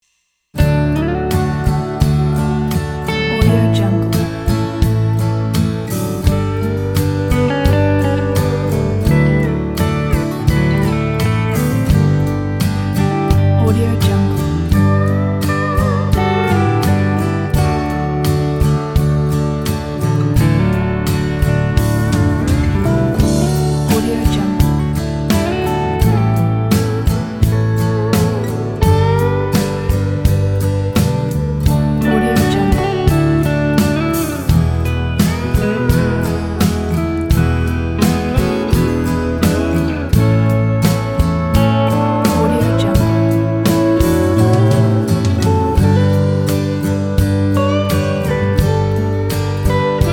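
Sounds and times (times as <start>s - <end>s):
dreamy country pop: 0.6s - 50.1s.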